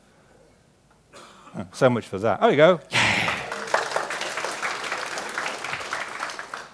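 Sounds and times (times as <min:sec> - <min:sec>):
speech: 0:01.6 - 0:03.0
audience applause: 0:03.0 - 0:06.7.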